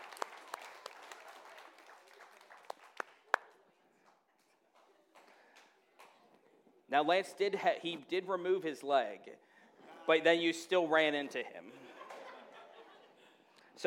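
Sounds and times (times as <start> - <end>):
audience applause: 0.0 - 3.5
speech: 6.9 - 9.5, 10.1 - 11.8
laughter: 11.2 - 13.7.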